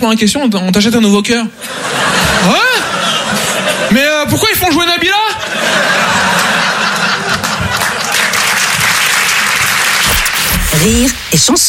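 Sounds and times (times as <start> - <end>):
speech: 0.0 - 3.0, 10.8 - 11.6
laughter: 1.5 - 9.0
audience applause: 6.0 - 10.4.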